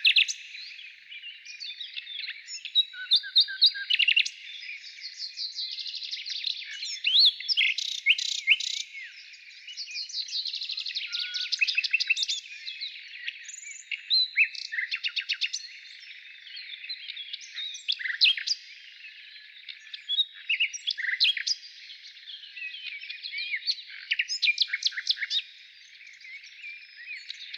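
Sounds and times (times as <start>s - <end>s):
nightingale singing in the morning: 0.0s - 27.5s.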